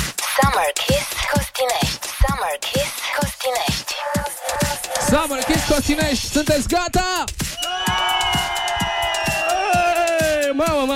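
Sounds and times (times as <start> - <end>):
speech: 0.4 - 7.4, 10.6 - 10.9
beach crowd whistling: 7.5 - 10.4.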